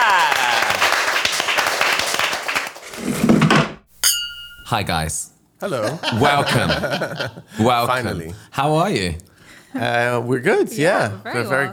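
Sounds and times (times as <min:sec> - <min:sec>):
crowd applause: 0:00.0 - 0:03.0
speech: 0:04.7 - 0:11.7
laughter: 0:05.7 - 0:07.7.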